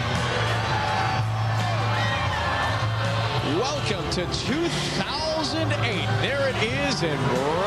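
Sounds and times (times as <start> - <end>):
huge crowd of over a million cheering at New Year: 0.0 - 7.6
speech: 3.5 - 7.6.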